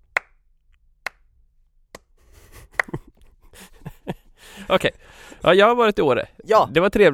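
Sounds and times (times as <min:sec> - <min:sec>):
slow clapping: 0:02.0 - 0:03.2
laughter: 0:02.2 - 0:05.7
speech: 0:04.7 - 0:07.1.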